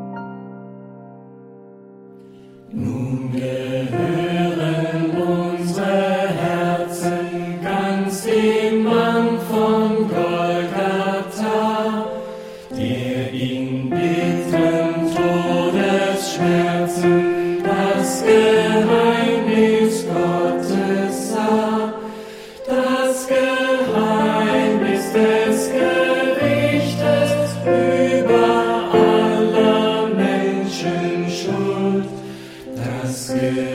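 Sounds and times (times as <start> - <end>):
tenor singing: 2.7 - 33.7.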